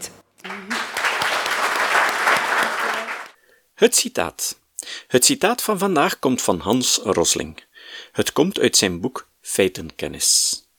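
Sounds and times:
audience applause: 0.4 - 3.4
speech: 3.8 - 10.6.

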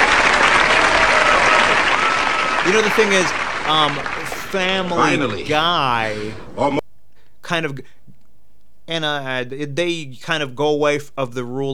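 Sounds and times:
TV audience clapping: 0.0 - 6.8
laugh track: 0.0 - 6.8
speech: 2.7 - 6.8, 7.5 - 8.0, 8.9 - 11.7.

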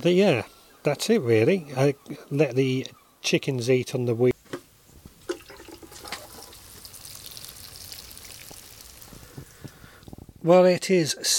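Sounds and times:
speech: 0.0 - 4.4, 10.5 - 11.3
watering plants in a greenhouse: 5.1 - 10.4.

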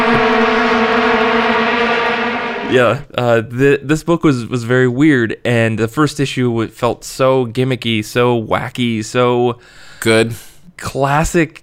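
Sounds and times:
vuvuzelas or air horns: 0.0 - 2.9
speech: 2.7 - 11.6.

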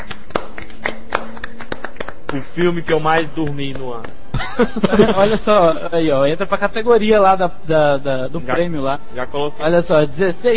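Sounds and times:
hand clapping: 0.0 - 5.1
speech: 2.3 - 10.5
laughter: 4.3 - 6.2.

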